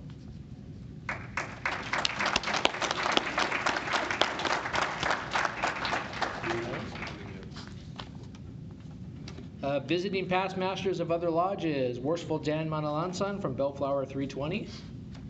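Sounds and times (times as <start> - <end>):
group applause: 1.1 - 7.6
speech: 9.8 - 14.9.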